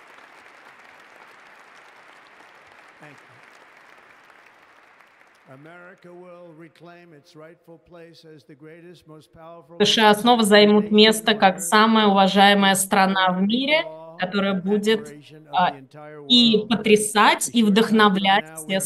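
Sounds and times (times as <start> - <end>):
enthusiastic applause: 0.0 - 6.1
speech: 3.0 - 3.5, 5.5 - 18.8.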